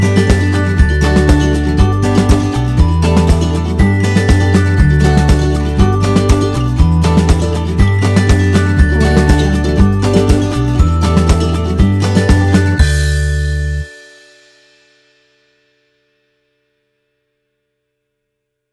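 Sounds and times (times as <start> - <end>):
fun acoustic folk music: 0.0 - 13.9.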